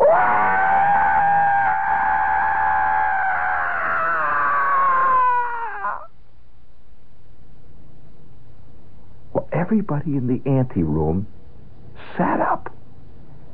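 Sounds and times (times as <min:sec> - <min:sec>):
voice imitating a scream: 0:00.0 - 0:06.1
speech: 0:09.7 - 0:11.4, 0:12.2 - 0:12.7.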